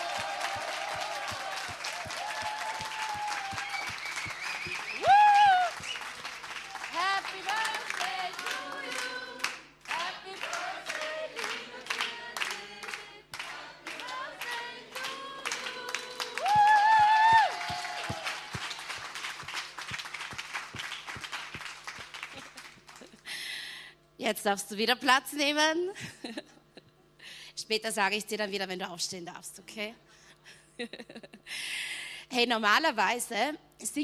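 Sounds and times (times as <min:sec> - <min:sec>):
audience applause: 0:00.0 - 0:23.2
speech: 0:24.3 - 0:26.4, 0:27.7 - 0:30.1, 0:30.8 - 0:31.3, 0:32.4 - 0:34.0.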